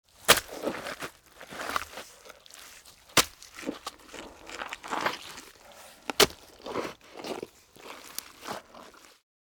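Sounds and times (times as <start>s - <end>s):
hoe striking a dirt surface to cultivate: 0.2s - 2.0s, 3.1s - 5.2s, 6.0s - 7.5s.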